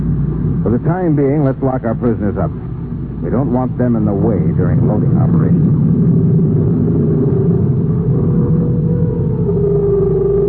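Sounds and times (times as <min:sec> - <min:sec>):
big interstellar ship landing on Jupiter's fourth moon: 0:00.0 - 0:10.4
speech: 0:00.7 - 0:06.3.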